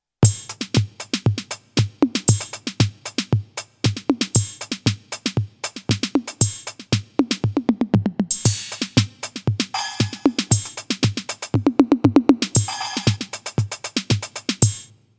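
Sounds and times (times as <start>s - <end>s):
mesh electronic drum kit: 0.2s - 14.9s.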